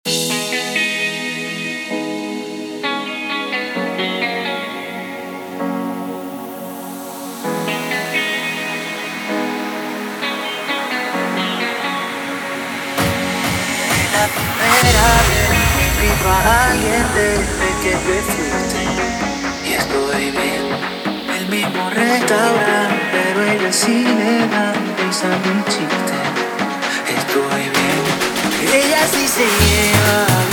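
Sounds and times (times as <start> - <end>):
intro outro music: 0.1 - 30.5.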